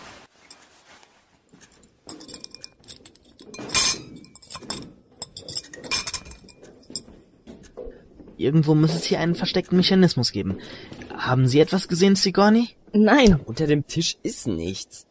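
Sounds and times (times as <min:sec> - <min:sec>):
dishes clinking while being cleared away: 0:01.6 - 0:08.0
speech: 0:08.4 - 0:15.0.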